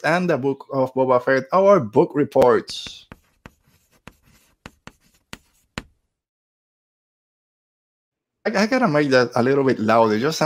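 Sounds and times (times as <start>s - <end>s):
speech: 0.0s - 3.0s, 8.5s - 10.4s
chalk writing on a chalkboard: 2.8s - 6.0s.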